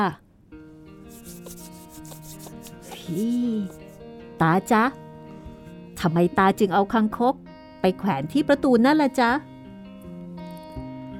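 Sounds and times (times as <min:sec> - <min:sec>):
speech: 0:00.0 - 0:00.2, 0:03.1 - 0:03.8, 0:04.4 - 0:05.0, 0:06.0 - 0:09.5
hands rubbing against bare arms: 0:01.1 - 0:04.0.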